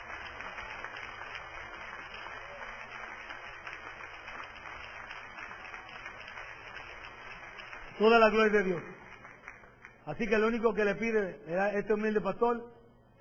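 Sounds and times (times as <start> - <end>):
loud applause from audience: 0.0 - 10.5
speech: 8.0 - 9.0, 10.1 - 12.8.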